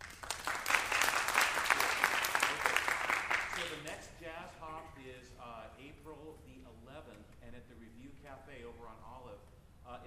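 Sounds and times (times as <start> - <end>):
audience clapping: 0.0 - 4.1.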